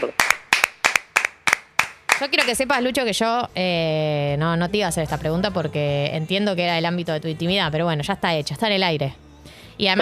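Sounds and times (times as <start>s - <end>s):
applause: 0.0s - 2.6s
speech: 2.2s - 9.2s, 9.8s - 10.0s.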